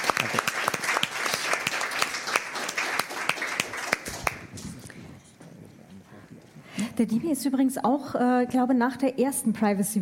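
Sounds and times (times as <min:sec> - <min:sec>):
audience applause: 0:00.0 - 0:04.7
speech: 0:07.0 - 0:09.9.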